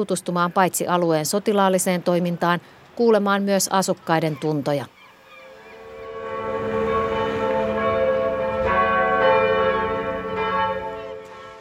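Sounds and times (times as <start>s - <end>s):
speech: 0.0s - 5.0s
Kirkkoniemi church bells ringing on the Barents Sea coast: 5.4s - 11.5s.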